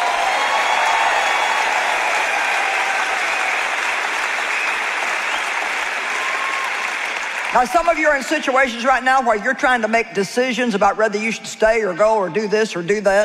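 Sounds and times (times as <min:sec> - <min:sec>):
audience clapping: 0:00.0 - 0:09.3
speech: 0:07.6 - 0:13.2.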